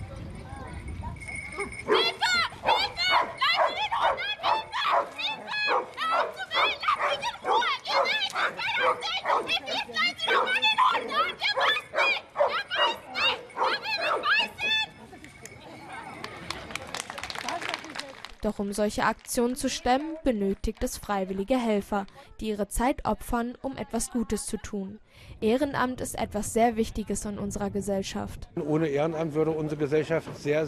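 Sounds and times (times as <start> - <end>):
rescue dogs barking during search training: 1.6 - 14.6
speech: 18.6 - 30.6.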